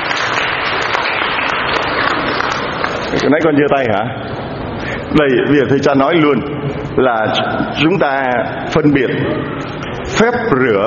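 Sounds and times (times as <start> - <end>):
audience applause: 0.0 - 3.2
speech: 3.3 - 4.4, 5.1 - 10.8.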